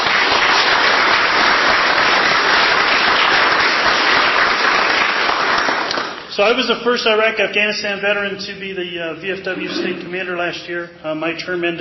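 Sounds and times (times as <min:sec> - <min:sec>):
audience applause: 0:00.0 - 0:06.3
speech: 0:06.4 - 0:11.7.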